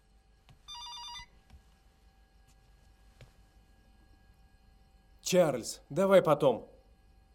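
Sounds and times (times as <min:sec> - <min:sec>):
telephone ringing at home: 0:00.7 - 0:01.4
speech: 0:05.3 - 0:06.7.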